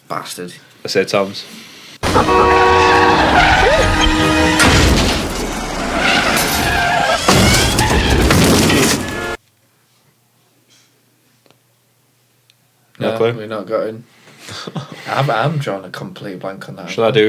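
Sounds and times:
speech: 0:00.1 - 0:02.8, 0:13.0 - 0:17.2
cars skidding and crashing in a film scene: 0:02.0 - 0:09.4.

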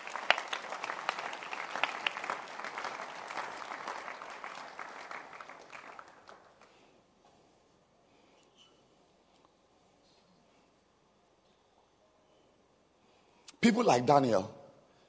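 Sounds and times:
audience clapping hands: 0:00.0 - 0:06.8
speech: 0:13.6 - 0:14.6.

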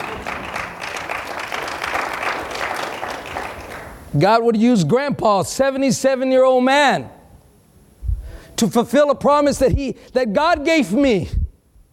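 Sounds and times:
audience clapping: 0:00.0 - 0:04.1
speech: 0:04.1 - 0:07.2, 0:08.6 - 0:11.4.

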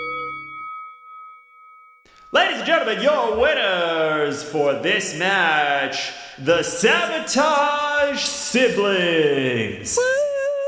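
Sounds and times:
wrestling match bell dinging: 0:00.0 - 0:02.8
speech: 0:02.3 - 0:10.2.

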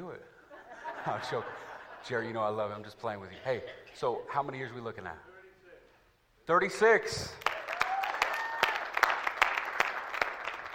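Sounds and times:
laughter: 0:00.4 - 0:02.7
speech: 0:01.0 - 0:05.3, 0:06.5 - 0:07.4
audience applause: 0:07.4 - 0:10.7.

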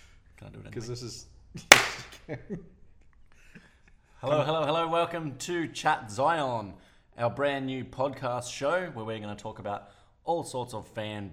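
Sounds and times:
speech: 0:00.4 - 0:02.8, 0:04.2 - 0:11.3
single loud hand clap: 0:01.7 - 0:02.2.

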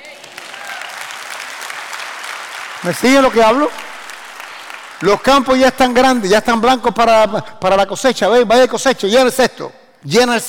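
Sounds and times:
audience applause: 0:00.0 - 0:05.7
speech: 0:02.8 - 0:03.9, 0:05.0 - 0:10.4.

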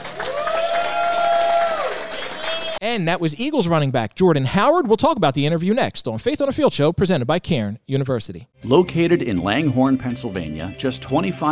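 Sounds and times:
crowd applauding: 0:00.0 - 0:02.8
high whoop or whistle: 0:00.2 - 0:02.8
speech: 0:02.8 - 0:11.5.

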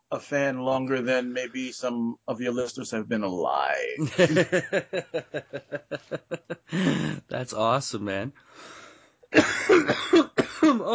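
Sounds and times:
speech: 0:00.1 - 0:10.9
laughter: 0:03.9 - 0:07.2
harsh coughing from someone sick with a virus: 0:06.7 - 0:07.3, 0:09.3 - 0:10.9.

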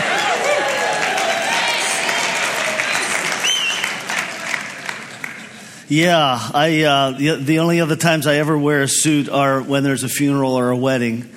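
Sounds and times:
crowd voices: 0:00.0 - 0:05.7
audience clapping: 0:00.0 - 0:05.8
speech: 0:05.9 - 0:11.3.

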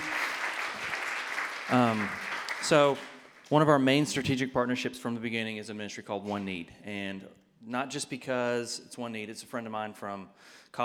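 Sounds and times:
audience clapping for volunteers: 0:00.0 - 0:03.9
speech: 0:01.7 - 0:10.8.

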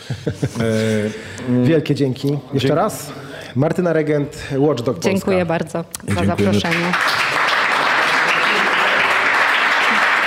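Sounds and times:
speech: 0:00.1 - 0:07.2
live audience applause: 0:06.6 - 0:10.2.

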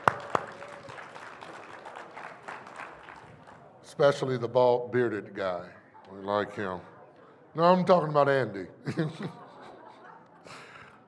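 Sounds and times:
crowd applauding: 0:00.0 - 0:03.8
speech: 0:04.0 - 0:06.9, 0:07.6 - 0:09.4
laughter: 0:08.7 - 0:11.0.

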